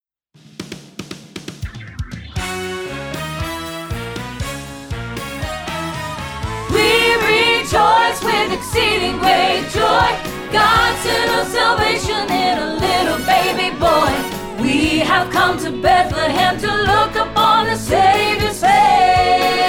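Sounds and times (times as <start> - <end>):
soprano singing a rehearsal track: 6.7 - 19.6.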